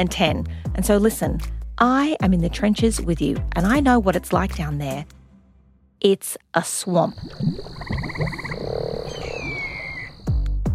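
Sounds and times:
speech: 0.0s - 5.2s, 6.0s - 8.6s
swamp frogs croaking in a chorus: 6.7s - 10.4s
insect drone: 6.8s - 10.6s
thin whistling call: 7.2s - 10.3s.

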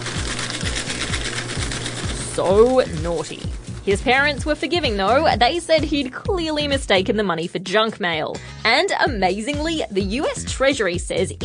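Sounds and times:
paper shredder shredding: 0.0s - 5.7s
speech: 2.4s - 11.4s.

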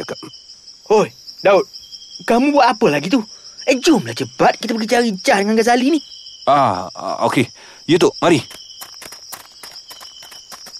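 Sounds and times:
speech: 0.0s - 8.6s
footsteps of people walking through a forest: 8.3s - 10.7s.

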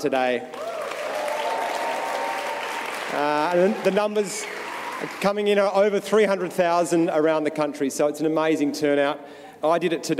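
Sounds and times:
speech: 0.0s - 0.6s, 3.1s - 10.1s
audience cheering: 0.5s - 5.2s.

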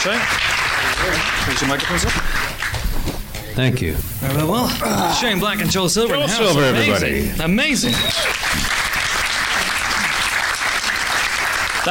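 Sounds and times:
speech: 0.0s - 2.5s, 3.6s - 8.6s
audience applause: 0.0s - 3.0s, 6.2s - 11.8s.

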